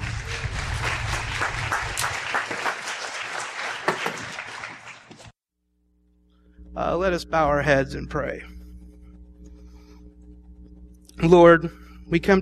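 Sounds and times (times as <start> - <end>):
audience applause welcoming a guest speaker at a morning church service: 0.0 - 5.3
speech: 6.8 - 8.6, 11.2 - 12.3.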